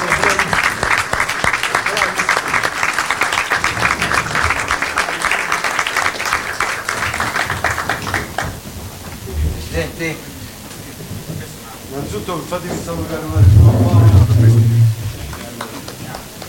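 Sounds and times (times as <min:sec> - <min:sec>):
audience applause at a televised music contest: 0:00.0 - 0:09.2, 0:13.0 - 0:16.4
speech: 0:12.2 - 0:14.7.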